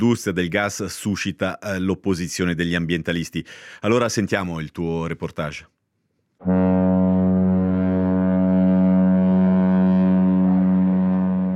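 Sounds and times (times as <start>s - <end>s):
speech: 0.0s - 5.8s, 6.4s - 6.8s
LNG tanker ship horn blast: 6.4s - 11.5s.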